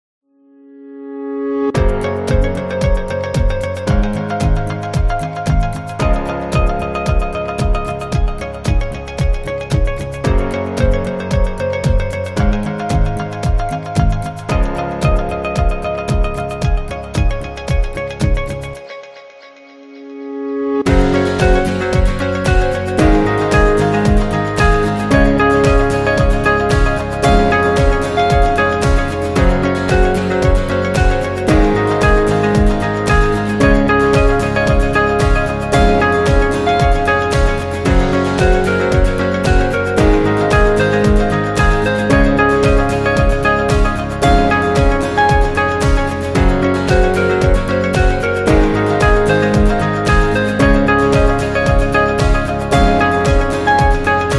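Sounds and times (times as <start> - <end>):
light guitars: 1.8 - 54.3.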